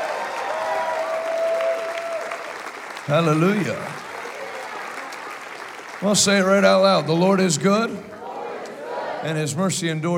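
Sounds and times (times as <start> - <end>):
crowd applause: 0.0 - 7.7
speech: 3.1 - 4.0, 6.0 - 8.1, 9.2 - 10.1.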